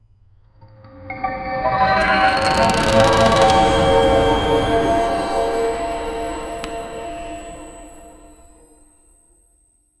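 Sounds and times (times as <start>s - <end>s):
magical enchanted paint artifact sound: 1.8s - 8.9s.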